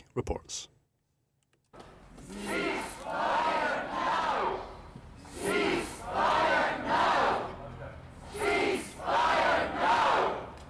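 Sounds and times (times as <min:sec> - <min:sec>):
protesters chanting in unison outside the Scottish Parliament demanding a Gaza ceasefire: 0:02.2 - 0:10.6.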